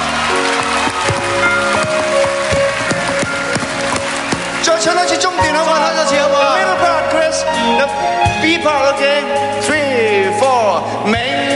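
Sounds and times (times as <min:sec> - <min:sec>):
audience applause: 0:00.0 - 0:05.8
speech: 0:04.8 - 0:11.2.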